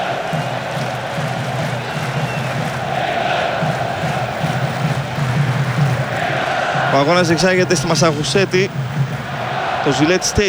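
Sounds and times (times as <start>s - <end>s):
football crowd cheering at Gillette Stadium in Massachusetts during an Arsenal match: 0.0s - 10.4s
laughter: 0.0s - 10.4s
speech: 7.0s - 9.0s, 9.8s - 10.4s.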